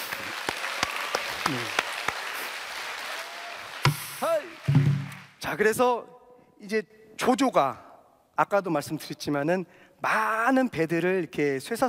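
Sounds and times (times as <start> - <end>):
audience applause: 0.0 - 5.4
speech: 1.5 - 1.8, 5.6 - 7.8, 8.4 - 11.8.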